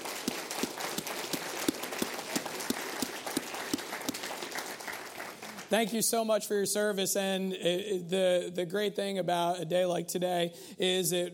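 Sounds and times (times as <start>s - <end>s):
audience applauding: 0.0s - 5.8s
speech: 5.7s - 11.3s.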